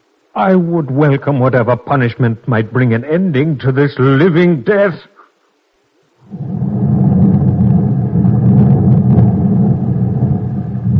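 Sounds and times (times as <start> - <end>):
speech: 0.4 - 5.1, 6.3 - 6.6
distant thunder rumbling: 6.2 - 10.9.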